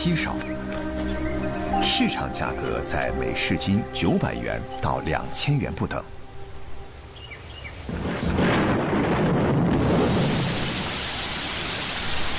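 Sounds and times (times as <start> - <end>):
speech: 0.0 - 0.8, 1.8 - 6.2
heavy rain: 5.8 - 12.3
thunder rumbling: 7.8 - 11.7.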